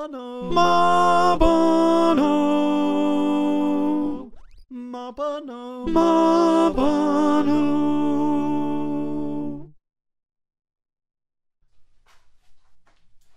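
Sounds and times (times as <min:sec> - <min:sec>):
alto choir singing: 0:00.4 - 0:04.3, 0:05.7 - 0:09.7.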